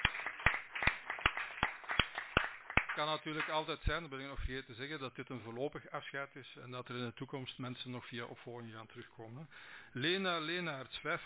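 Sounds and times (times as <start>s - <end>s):
sparse handclaps in a parliament during a farewell: 0.0s - 3.7s
speech: 3.0s - 11.2s.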